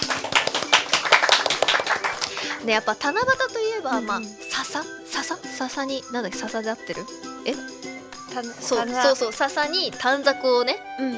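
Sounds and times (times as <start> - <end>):
applause: 0.0 - 2.7
speech: 2.6 - 7.8, 8.4 - 11.1.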